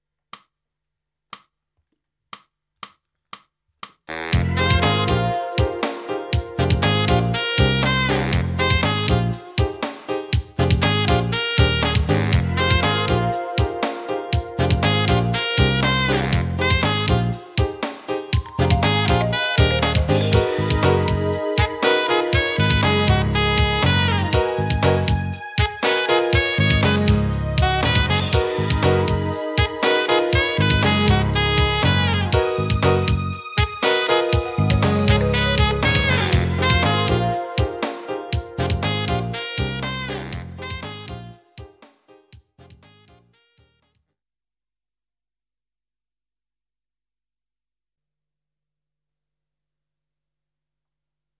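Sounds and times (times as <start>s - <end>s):
minor-key saxophone improvisation: 4.1s - 9.7s, 10.6s - 17.7s, 18.4s - 41.6s.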